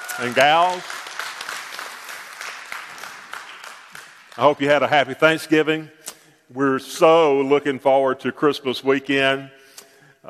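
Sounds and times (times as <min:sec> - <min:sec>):
audience applauding and cheering: 0:00.0 - 0:05.0
speech: 0:00.2 - 0:01.0, 0:04.4 - 0:09.6.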